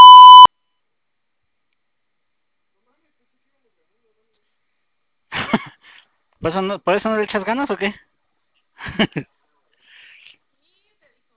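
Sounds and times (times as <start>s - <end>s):
voicemail recording beep tone: 0.0s - 0.5s
speech: 6.4s - 8.1s, 8.8s - 9.4s.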